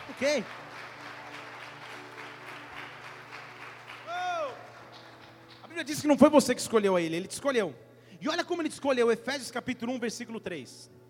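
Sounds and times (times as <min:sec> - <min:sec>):
audience applause: 0:00.0 - 0:05.7
speech: 0:00.2 - 0:00.7, 0:05.8 - 0:11.0.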